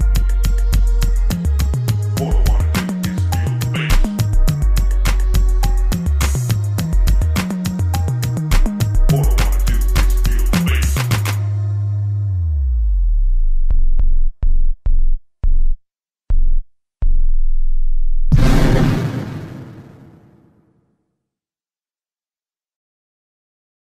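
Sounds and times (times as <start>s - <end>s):
bass boosted music: 0.0s - 18.3s.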